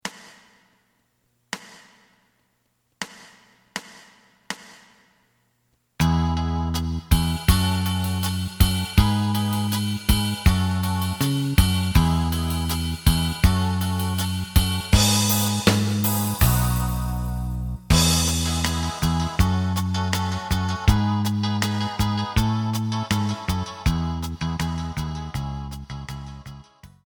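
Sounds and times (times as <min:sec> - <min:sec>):
lead guitar: 0:06.1 - 0:26.3.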